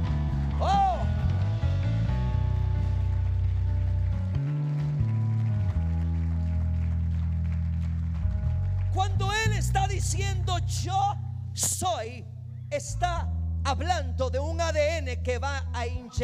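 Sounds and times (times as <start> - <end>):
loud sustained keyboard chords: 0.0 - 16.2
low bass notes: 0.0 - 16.2
crowd applause: 2.9 - 9.2
speech: 11.8 - 16.2.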